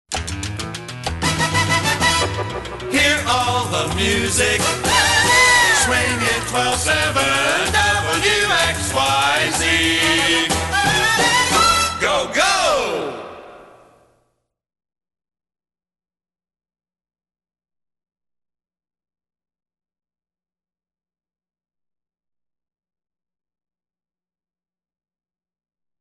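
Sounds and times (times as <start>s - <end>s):
swing music: 0.1s - 13.6s.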